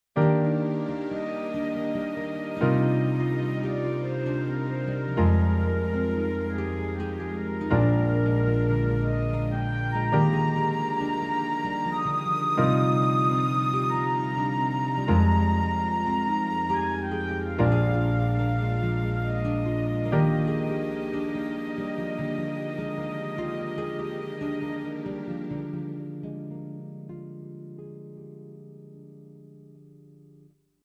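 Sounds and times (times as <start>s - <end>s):
woodwind flute with accompaniment: 0.2s - 26.0s.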